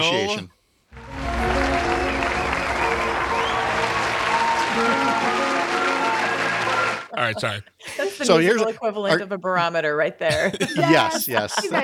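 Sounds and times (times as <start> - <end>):
speech: 0.0 - 0.6, 7.2 - 11.8
faint cheering: 1.0 - 7.1
canned applause sound effect: 1.0 - 7.6
laughter: 4.1 - 8.8, 10.3 - 11.8.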